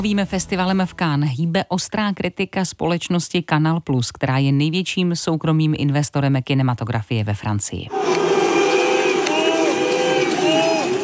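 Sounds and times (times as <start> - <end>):
speech: 0.0 - 8.5
cinema audience whistling and booing: 7.9 - 11.0.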